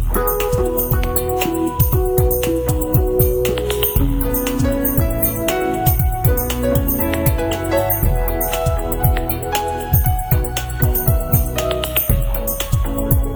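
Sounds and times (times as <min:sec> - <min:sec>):
western-style music: 0:00.1 - 0:13.3.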